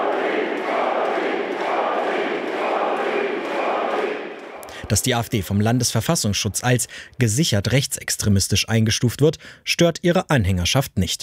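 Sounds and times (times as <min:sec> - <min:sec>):
thousands of people cheering at rally in Magdeburg: 0:00.0 - 0:06.1
speech: 0:04.9 - 0:11.2.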